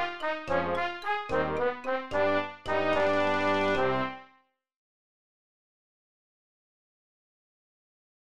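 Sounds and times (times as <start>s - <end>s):
funeral march music: 0.0s - 4.3s.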